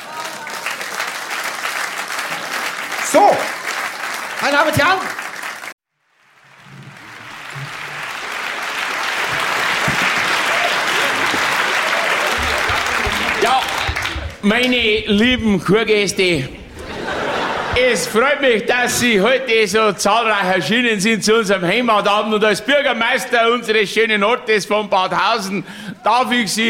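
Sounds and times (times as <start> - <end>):
audience clapping: 0.0 - 15.8
speech: 4.4 - 5.2, 14.4 - 16.6, 17.8 - 26.6
laughter: 8.3 - 15.4, 16.2 - 18.7.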